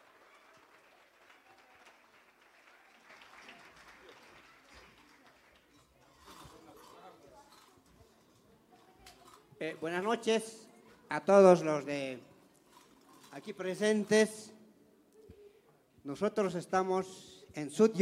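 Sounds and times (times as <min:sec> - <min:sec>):
audience applause: 0:00.0 - 0:06.5
speech: 0:09.6 - 0:12.3, 0:13.4 - 0:14.5, 0:16.1 - 0:18.0.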